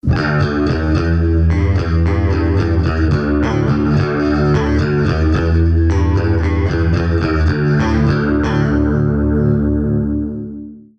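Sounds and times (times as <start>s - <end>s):
small clone chorus effect sound: 0.0s - 10.9s.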